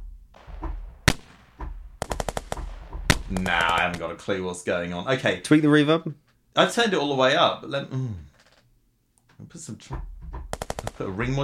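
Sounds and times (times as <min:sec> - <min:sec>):
synthesized gunfire sound effect: 0:00.3 - 0:04.1, 0:10.5 - 0:11.4
speech: 0:03.3 - 0:08.3, 0:09.5 - 0:10.1, 0:10.9 - 0:11.4.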